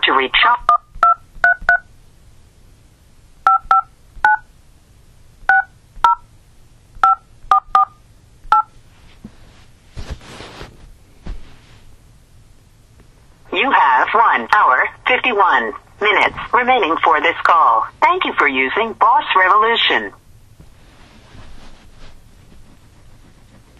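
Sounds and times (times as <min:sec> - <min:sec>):
speech: 0:00.1 - 0:00.7, 0:13.6 - 0:20.2
telephone keypad DTMF tones dialing a number on a prepaid calling service: 0:00.7 - 0:01.8, 0:03.5 - 0:04.4, 0:05.5 - 0:06.2, 0:07.0 - 0:08.7.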